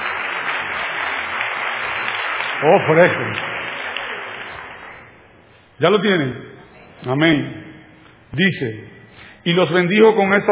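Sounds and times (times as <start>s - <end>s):
audience applause at a church service: 0.0s - 5.1s
speech: 2.6s - 3.5s, 5.8s - 7.6s, 8.3s - 10.4s.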